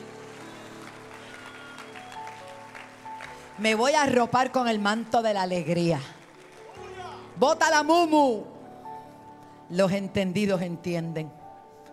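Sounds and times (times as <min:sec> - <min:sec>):
audience applause: 0:00.0 - 0:04.0, 0:05.7 - 0:07.3
speech: 0:03.6 - 0:06.2, 0:07.4 - 0:08.5, 0:09.7 - 0:11.4.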